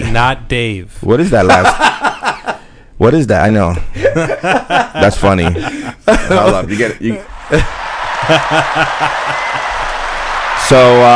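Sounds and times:
speech: 0:00.1 - 0:02.4, 0:03.0 - 0:09.5, 0:10.7 - 0:11.1
laughter: 0:01.4 - 0:02.6, 0:04.0 - 0:10.2
stadium crowd applause: 0:07.3 - 0:11.1.

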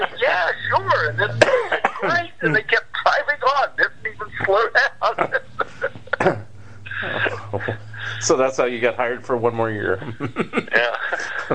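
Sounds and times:
laughter: 0:00.0 - 0:08.5, 0:09.7 - 0:11.5
person coughing: 0:01.3 - 0:02.3, 0:06.1 - 0:07.4
speech: 0:08.4 - 0:10.9.

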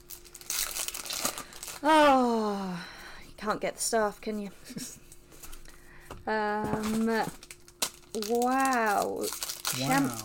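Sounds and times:
empty Yu-Gi-Oh! trading card booster pack wrapper crinkling: 0:00.0 - 0:01.9, 0:06.7 - 0:10.2
speech: 0:01.8 - 0:05.0, 0:06.3 - 0:07.4, 0:08.2 - 0:10.2.

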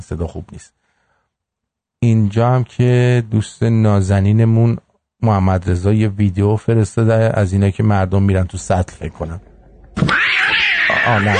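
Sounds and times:
speech: 0:00.0 - 0:00.8, 0:02.0 - 0:10.2, 0:11.1 - 0:11.3
cat screeching: 0:10.0 - 0:11.3.

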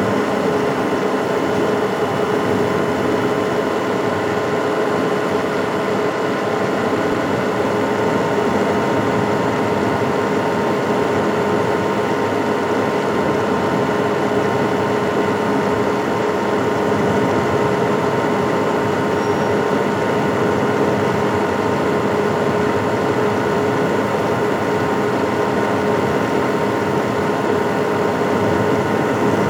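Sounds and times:
fan whirring: 0:00.0 - 0:29.4.

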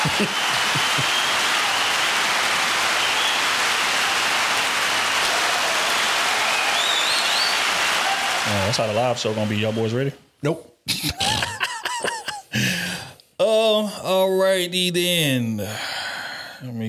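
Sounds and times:
laughter: 0:00.0 - 0:01.4, 0:10.9 - 0:12.7
loud applause: 0:00.0 - 0:10.0
speech: 0:00.2 - 0:01.2, 0:08.7 - 0:11.5, 0:14.0 - 0:16.0, 0:16.6 - 0:16.8.

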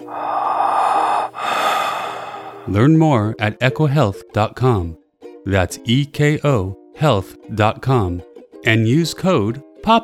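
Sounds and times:
3M Littmann Core digital stethoscope whoosh, normal then amplified: 0:00.0 - 0:02.7
speech: 0:02.6 - 0:10.0.

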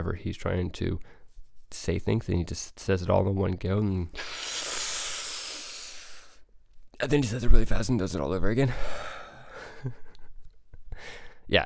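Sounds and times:
speech: 0:00.0 - 0:04.7, 0:07.0 - 0:09.2, 0:09.8 - 0:10.0, 0:11.0 - 0:11.6
deep breath in between sentences: 0:04.2 - 0:06.4, 0:08.7 - 0:09.8, 0:10.9 - 0:11.4.

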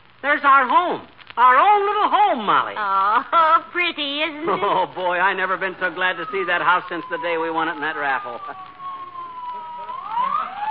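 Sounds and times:
speech: 0:00.2 - 0:08.8
laughter: 0:04.3 - 0:05.3
fire engine siren: 0:05.3 - 0:10.6.

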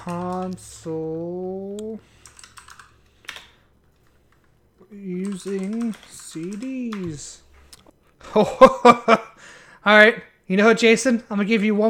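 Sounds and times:
typing on a computer keyboard: 0:00.0 - 0:00.9, 0:01.8 - 0:03.6, 0:05.2 - 0:07.1
speech: 0:00.0 - 0:02.2, 0:04.9 - 0:07.4, 0:08.2 - 0:11.8.

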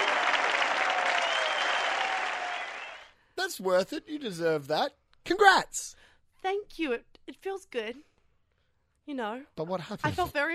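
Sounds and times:
clapping: 0:00.0 - 0:03.1
speech: 0:03.5 - 0:08.1, 0:09.1 - 0:10.5.

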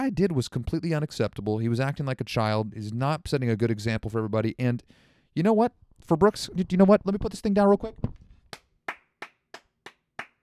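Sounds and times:
speech: 0:00.0 - 0:08.2
single pair of hands clapping: 0:08.5 - 0:10.4.

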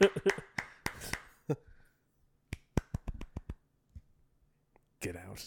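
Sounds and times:
hands clapping: 0:00.0 - 0:01.6, 0:02.5 - 0:03.7.

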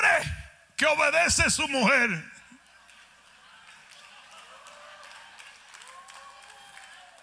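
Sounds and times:
speech: 0:00.2 - 0:02.4
women applauding: 0:02.6 - 0:07.2.

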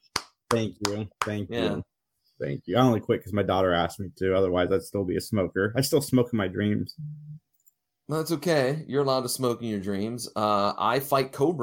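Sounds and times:
hand clapping applause: 0:00.1 - 0:01.4
speech: 0:00.5 - 0:07.5, 0:08.1 - 0:11.6.

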